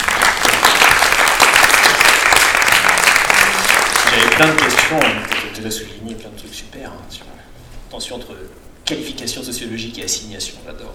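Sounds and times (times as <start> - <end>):
audience applause: 0.0 - 5.6
speech: 4.4 - 10.9.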